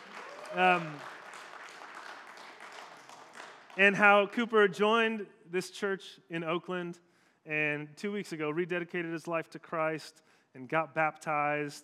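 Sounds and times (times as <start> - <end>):
audience applauding: 0.0 - 4.0
speech: 0.5 - 1.2, 3.8 - 11.8.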